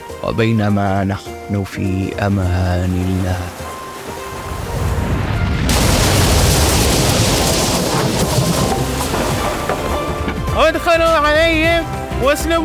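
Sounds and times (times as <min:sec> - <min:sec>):
speech: 0:00.2 - 0:03.7, 0:10.6 - 0:12.6
water crashing: 0:01.8 - 0:12.6
wind roaring: 0:03.1 - 0:10.6.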